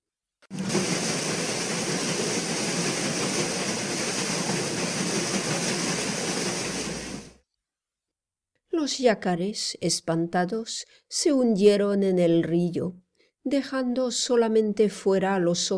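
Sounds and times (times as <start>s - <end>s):
steamboat paddles splashing in water: 0.5s - 7.4s
speech: 8.8s - 15.7s.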